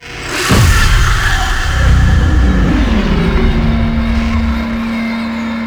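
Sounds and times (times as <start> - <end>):
portal enter stinger: 0.1 - 5.5.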